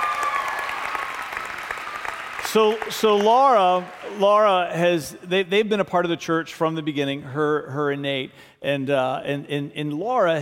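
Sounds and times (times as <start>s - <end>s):
audience applause: 0.0s - 4.8s
speech: 2.5s - 10.3s.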